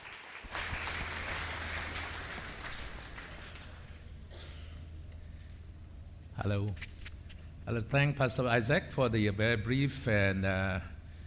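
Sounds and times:
applause welcoming a guest speaker at a church retreat: 0:00.0 - 0:04.0
speech: 0:06.4 - 0:07.0, 0:07.7 - 0:11.0.

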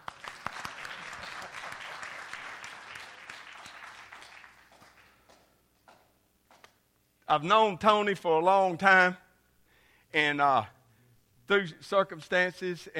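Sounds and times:
audience clapping: 0:00.0 - 0:06.8
speech: 0:07.3 - 0:09.2, 0:10.1 - 0:10.8, 0:11.5 - 0:12.9.

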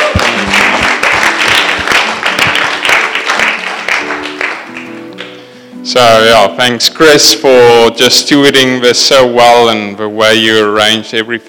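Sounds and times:
audience clapping: 0:00.0 - 0:05.4
speech: 0:06.0 - 0:11.4.

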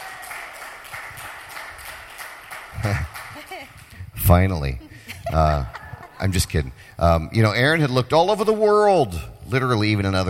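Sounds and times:
light applause: 0:00.0 - 0:03.9
speech: 0:02.8 - 0:10.2
laughter: 0:04.8 - 0:06.8.

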